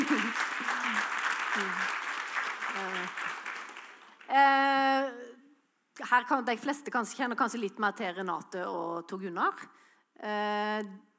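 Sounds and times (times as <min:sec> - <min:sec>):
laughter: 0:00.0 - 0:01.0
audience applauding: 0:00.0 - 0:04.3
speech: 0:01.6 - 0:02.0, 0:04.3 - 0:05.2, 0:06.1 - 0:11.1.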